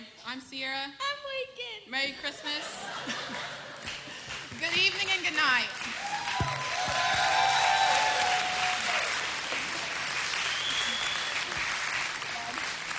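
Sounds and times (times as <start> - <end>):
speech: 0.3 - 3.8, 4.6 - 7.4
laughter: 2.2 - 4.5
audience applauding: 3.3 - 12.9.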